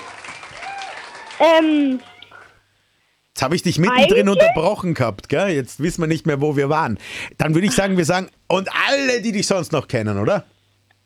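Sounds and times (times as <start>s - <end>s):
audience clapping: 0.0s - 1.7s
loud voiced shout or cheer: 0.6s - 1.6s, 4.0s - 4.7s
speech: 1.4s - 2.1s, 3.4s - 10.5s.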